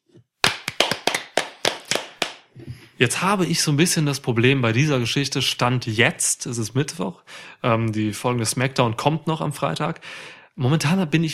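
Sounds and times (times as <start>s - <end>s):
applause, hands clapping: 0.4s - 2.5s
speech: 3.0s - 11.3s.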